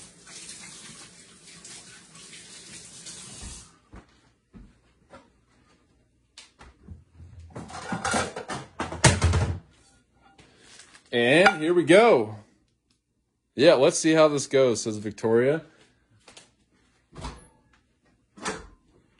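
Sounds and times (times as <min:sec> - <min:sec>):
hands splashing and rinsing under a tap: 0:00.0 - 0:03.7
running tap water: 0:00.0 - 0:03.8
speech: 0:11.2 - 0:12.4, 0:13.6 - 0:15.7.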